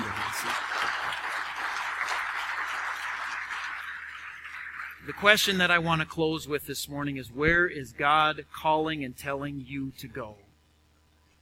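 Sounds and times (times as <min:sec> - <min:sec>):
audience applause: 0:00.0 - 0:05.6
speech: 0:05.1 - 0:10.4.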